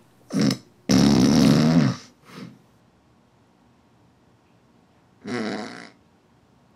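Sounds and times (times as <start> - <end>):
man snoring with sleep apnea: 0.3 - 2.5, 5.2 - 6.0.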